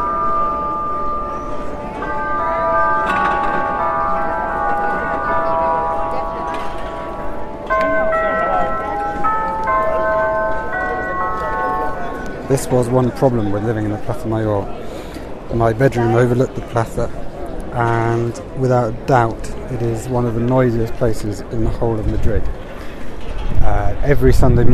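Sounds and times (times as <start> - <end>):
church bells ringing over a plaza: 0.0 - 17.3
speech: 12.5 - 14.9, 15.5 - 22.6, 24.0 - 24.7.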